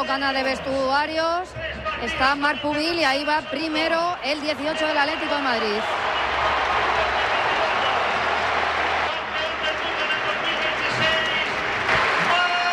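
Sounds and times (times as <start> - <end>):
speech: 0.0 - 6.6
stadium crowd applause: 3.5 - 12.7.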